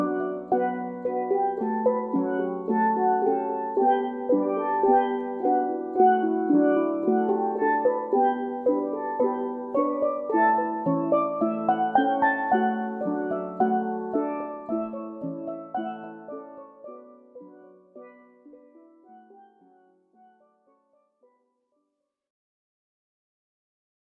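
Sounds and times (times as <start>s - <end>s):
steel drum band playing: 0.0s - 17.0s.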